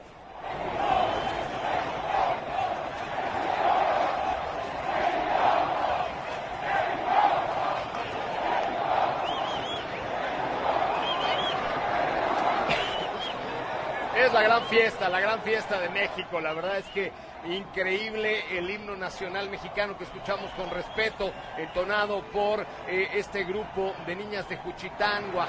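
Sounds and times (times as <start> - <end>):
large crowd cheering at the race track: 0.0 - 25.4
scattered shouts and whistles: 0.7 - 2.3, 9.0 - 11.8, 12.8 - 13.5, 14.2 - 25.4
speech: 14.7 - 25.4.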